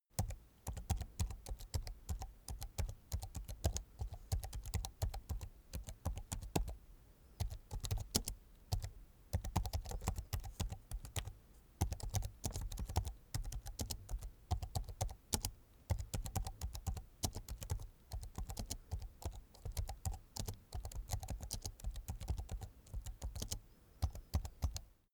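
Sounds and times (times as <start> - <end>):
slow soft typing on a laptop keyboard: 0.1 - 25.1.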